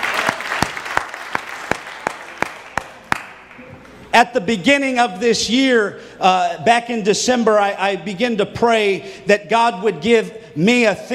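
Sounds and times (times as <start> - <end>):
audience hand clapping: 0.0 - 4.0
speech: 4.2 - 11.1.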